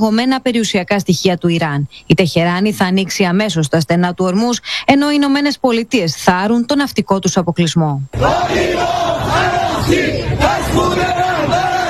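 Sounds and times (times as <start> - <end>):
speech: 0.0 - 11.6
crowd of street protesters chanting slogans: 8.1 - 11.8.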